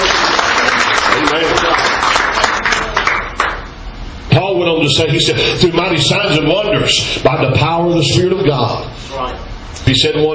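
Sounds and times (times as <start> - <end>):
audience clapping hands in praise: 0.0 - 3.7
speech: 4.8 - 9.3, 9.9 - 10.3.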